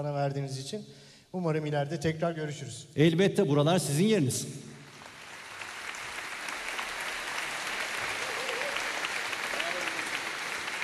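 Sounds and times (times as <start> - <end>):
speech: 0.0 - 4.7
audience applauding the orchestra: 4.9 - 10.8.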